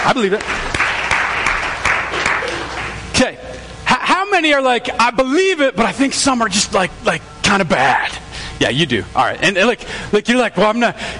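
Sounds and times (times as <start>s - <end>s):
audience applause: 0.0s - 3.1s
speech: 0.1s - 0.8s, 3.2s - 3.5s, 4.4s - 11.1s.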